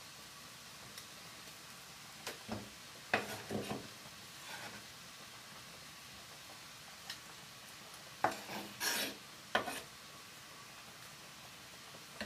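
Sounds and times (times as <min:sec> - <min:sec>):
low steady hiss of batch cooking for lunchboxes: 0:00.0 - 0:12.2.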